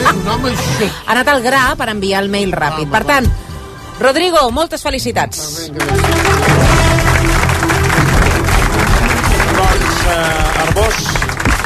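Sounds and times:
speech: 0.4s - 7.0s, 10.0s - 11.3s
applause: 5.8s - 11.6s.

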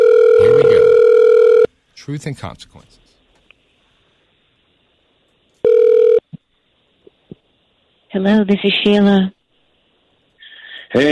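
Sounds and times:
telephone ringing: 0.0s - 1.7s, 5.6s - 6.2s
speech: 2.1s - 3.1s, 8.2s - 9.4s.

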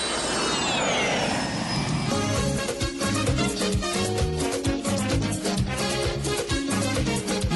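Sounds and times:
jet airplane flyby effect: 0.0s - 6.0s
upbeat rhythmic music: 2.4s - 7.5s.

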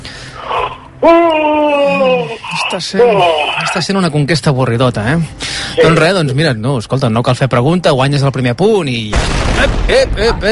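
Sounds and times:
person yawning: 0.4s - 2.6s
speech: 2.7s - 10.5s.

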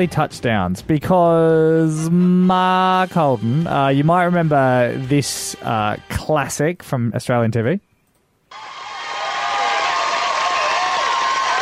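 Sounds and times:
speech: 0.0s - 7.9s
crowd cheering from TV clip: 8.5s - 11.6s.

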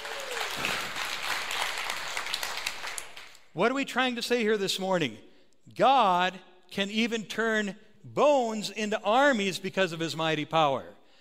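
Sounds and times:
audience clapping hands in praise: 0.0s - 3.5s
speech: 3.6s - 11.0s.

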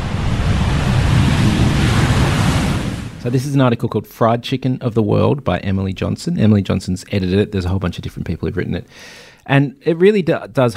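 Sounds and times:
airplane noise: 0.0s - 3.3s
speech: 3.2s - 10.7s.

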